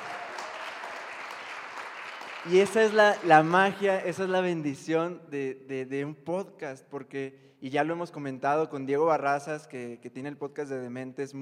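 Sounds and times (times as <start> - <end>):
applause: 0.0 - 4.3
speech: 2.4 - 11.4.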